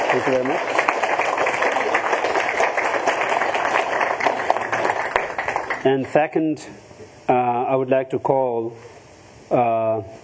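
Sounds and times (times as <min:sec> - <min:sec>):
audience applause: 0:00.0 - 0:06.1
speech: 0:00.1 - 0:00.9, 0:05.8 - 0:06.9, 0:07.7 - 0:08.9, 0:09.5 - 0:10.2.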